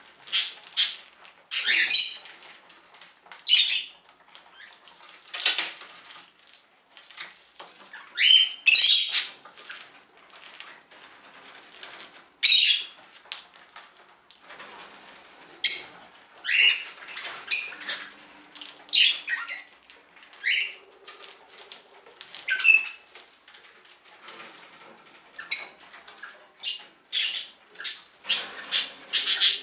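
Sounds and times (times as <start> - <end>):
budgerigar chirping and squawking: 0.3 - 2.3, 3.5 - 3.9, 7.9 - 9.4, 12.4 - 12.9, 15.6 - 18.2, 18.9 - 19.7, 20.4 - 20.8, 22.4 - 23.1, 25.4 - 29.6.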